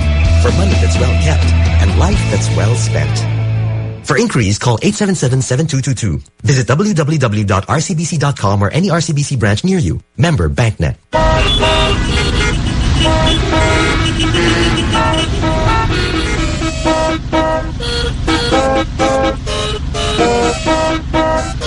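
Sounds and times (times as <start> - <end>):
low rumble of engines in traffic: 0.0 - 4.1, 11.1 - 21.6
speech: 0.4 - 3.4, 4.0 - 12.2
car horns honking in traffic: 11.1 - 21.6.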